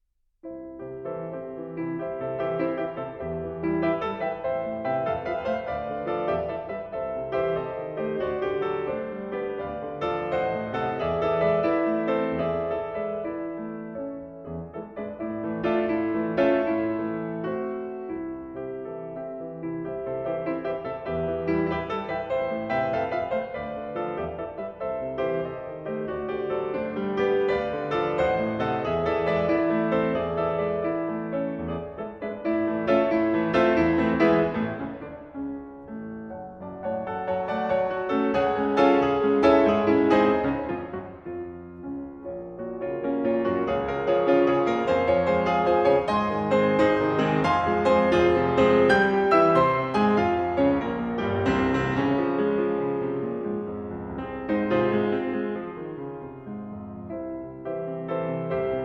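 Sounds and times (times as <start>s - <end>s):
piano intermezzo grazioso e giocoso: 0.0s - 58.8s.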